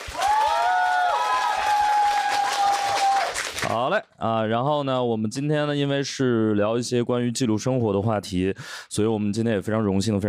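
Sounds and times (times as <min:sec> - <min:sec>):
audience applause: 0:00.0 - 0:03.7
speech: 0:03.7 - 0:10.2.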